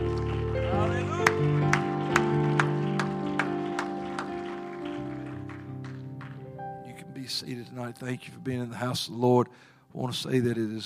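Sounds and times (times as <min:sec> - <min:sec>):
audience hand clapping: 0:00.0 - 0:06.8
speech: 0:07.3 - 0:10.8.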